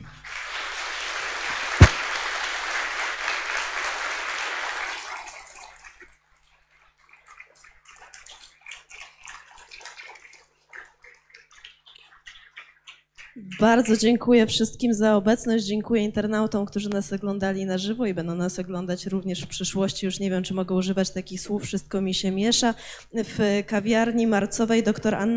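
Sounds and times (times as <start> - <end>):
audience applause: 0.0 - 5.9
speech: 13.6 - 25.3.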